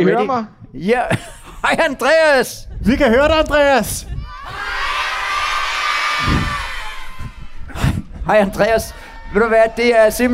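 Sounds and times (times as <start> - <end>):
speech: 0.0 - 4.8, 8.3 - 10.3
laughter: 1.0 - 2.0
crowd of children cheering and shouting: 4.3 - 7.6.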